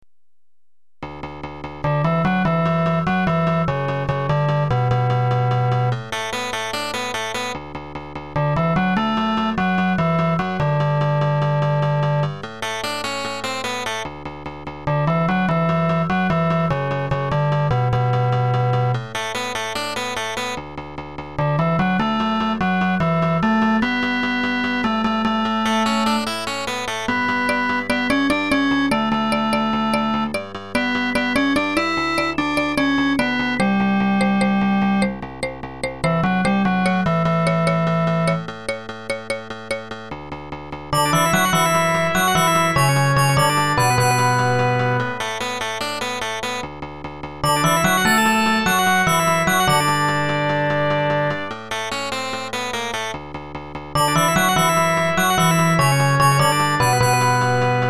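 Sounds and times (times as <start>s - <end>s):
background music: 1.0s - 57.8s.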